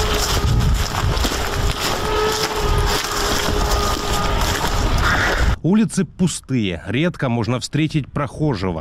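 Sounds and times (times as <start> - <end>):
drone humming: 0.0 - 5.6
speech: 5.6 - 8.7.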